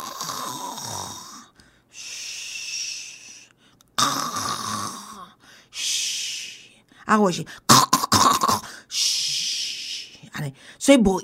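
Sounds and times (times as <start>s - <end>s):
voice imitating a person snoring: 0.0s - 1.6s, 4.0s - 5.4s, 7.7s - 8.8s
speech: 7.1s - 7.8s, 10.4s - 11.2s.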